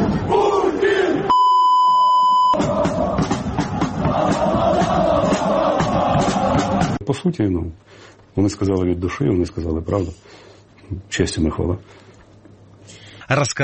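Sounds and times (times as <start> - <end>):
soldiers chanting at military parade rehearsal: 0.1 - 1.3, 2.5 - 7.0
speech: 7.2 - 12.0, 13.3 - 13.6.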